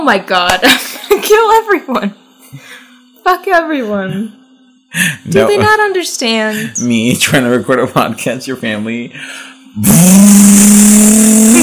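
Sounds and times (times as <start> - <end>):
speech: 0.0 - 11.6
moped engine revving: 9.8 - 11.6.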